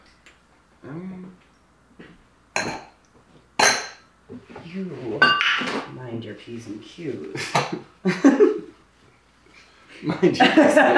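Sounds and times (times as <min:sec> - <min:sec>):
glasses clinking: 0:02.6 - 0:03.0, 0:03.6 - 0:04.0, 0:05.2 - 0:05.7
speech: 0:04.7 - 0:08.6, 0:10.0 - 0:10.9
laughter: 0:07.4 - 0:08.8, 0:09.9 - 0:10.9.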